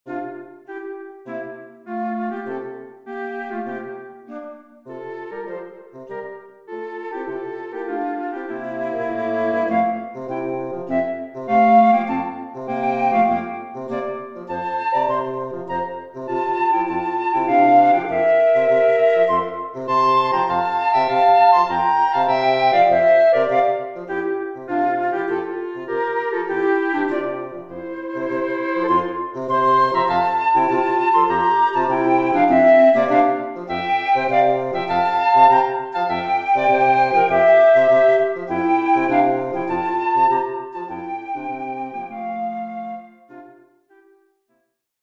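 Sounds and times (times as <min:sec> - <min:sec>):
woodwind trio: 0:00.1 - 0:44.2.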